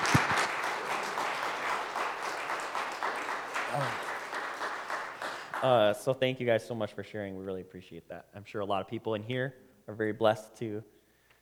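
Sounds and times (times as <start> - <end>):
crowd applause: 0.0 - 6.0
speech: 5.6 - 11.0.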